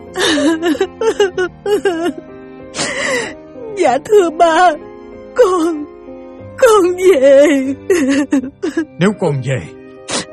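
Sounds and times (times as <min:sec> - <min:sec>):
woman bursting into tears, sobbing: 0:00.1 - 0:04.8, 0:05.4 - 0:05.9, 0:06.6 - 0:09.0
speech: 0:00.6 - 0:02.2, 0:03.9 - 0:05.9, 0:06.6 - 0:09.8.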